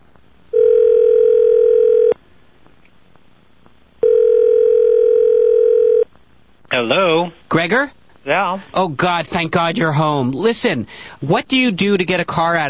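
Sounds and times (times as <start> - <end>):
telephone ringing tone: 0.5 - 2.2, 4.0 - 6.1
speech: 6.8 - 12.6.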